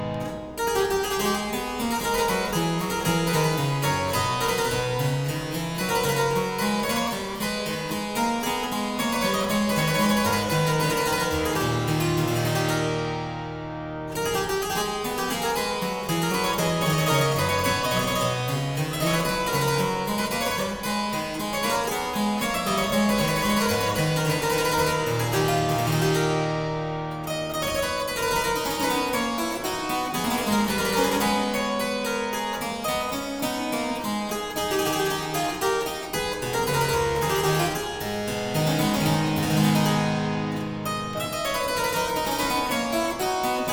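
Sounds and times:
harpsichord courante in A minor: 0:00.0 - 0:43.7.

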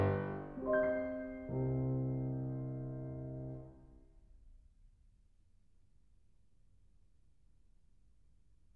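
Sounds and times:
small piano piece: 0:00.0 - 0:04.0.

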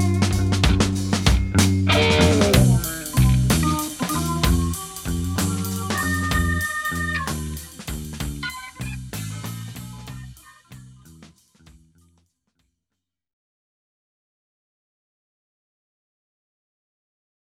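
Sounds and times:
instrumental blues: 0:00.0 - 0:11.1.

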